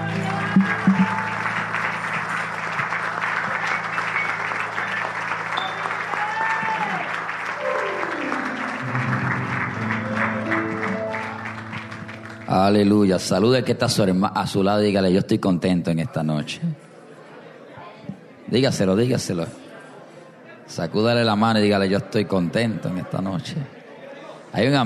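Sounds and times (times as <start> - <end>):
sustained keyboard chords: 0.0 - 6.1, 7.6 - 13.9
audience clapping: 0.0 - 14.0
speech: 12.7 - 16.8, 18.5 - 19.6, 20.7 - 23.8, 24.5 - 24.8.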